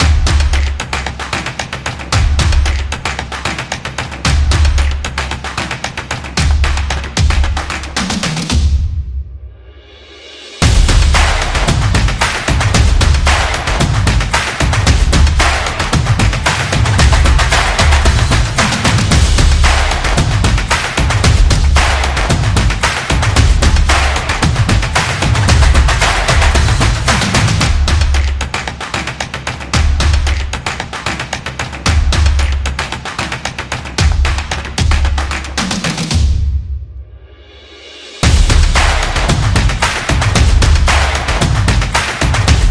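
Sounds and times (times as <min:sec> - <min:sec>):
drumming: 0:00.0 - 0:08.9, 0:10.2 - 0:36.6, 0:37.8 - 0:42.6.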